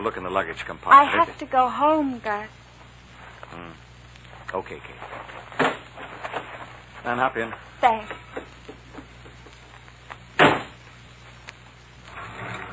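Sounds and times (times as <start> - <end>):
speech: 0.0 - 2.6, 3.5 - 3.9, 4.5 - 5.7, 7.0 - 8.3
sharp knock: 10.4 - 10.8.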